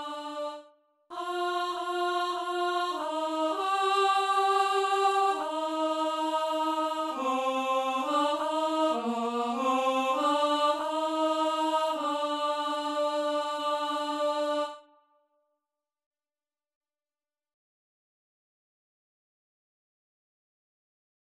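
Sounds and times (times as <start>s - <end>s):
contralto singing: 0.0s - 14.8s.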